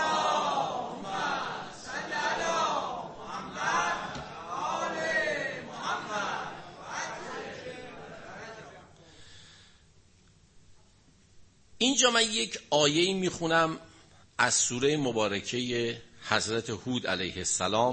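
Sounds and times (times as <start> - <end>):
congregation reciting a loud salawat in unison: 0.0 - 9.0
speech: 11.8 - 17.9.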